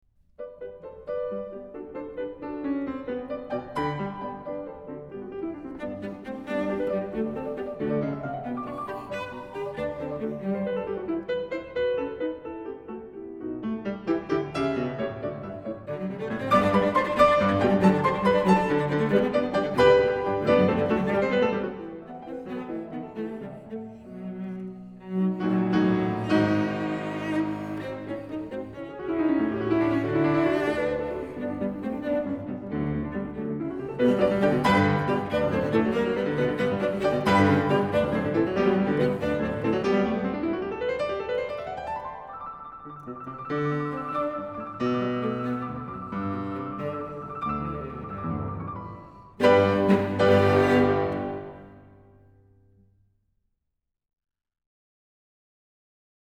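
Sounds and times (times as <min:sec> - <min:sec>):
cello and piano variations: 0:00.4 - 0:52.3.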